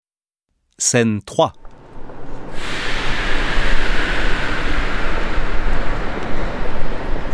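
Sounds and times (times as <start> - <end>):
speech: 0.8 - 1.6
rumbling rail noise at Gare de Lyon station in Paris: 1.6 - 7.3.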